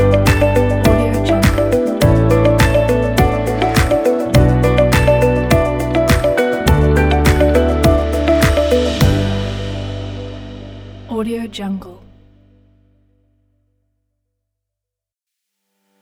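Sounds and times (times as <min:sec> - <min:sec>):
luxury motivational corporate music: 0:00.0 - 0:11.5.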